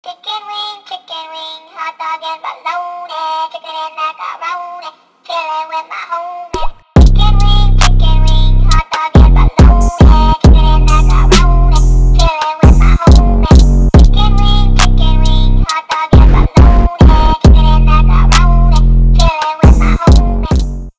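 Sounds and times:
music beat: 6.6s - 20.9s.

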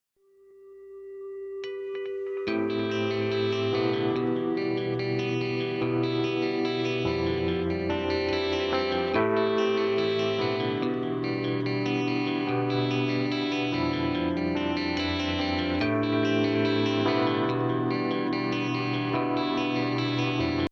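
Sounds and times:
guitar: 0.4s - 20.7s.

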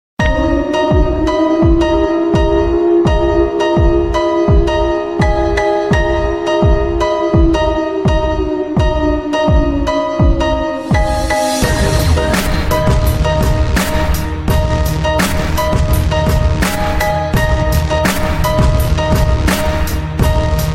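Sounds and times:
gangsta bass music mix: 0.2s - 20.7s.

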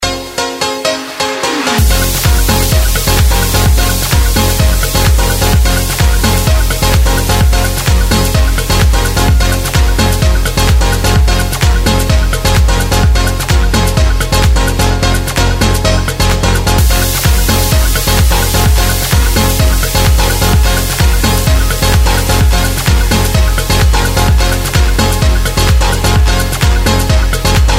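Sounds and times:
drums: 1.6s - 27.7s.

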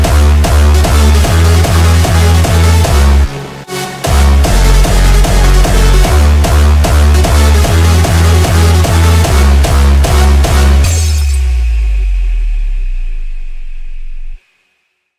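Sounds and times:
hard bounce instrumental remix ringtone: 0.0s - 14.4s.

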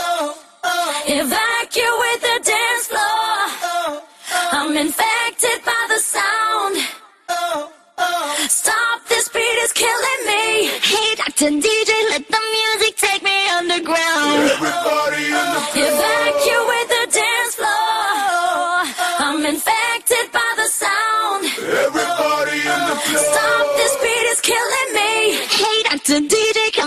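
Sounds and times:
a cappella singing: 0.0s - 26.8s
laughter: 14.3s - 17.0s, 21.5s - 24.6s.

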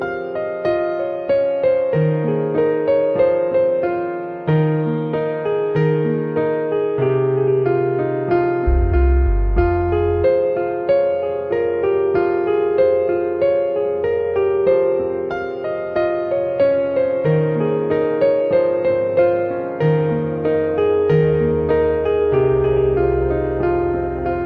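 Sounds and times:
piano: 0.0s - 24.4s.

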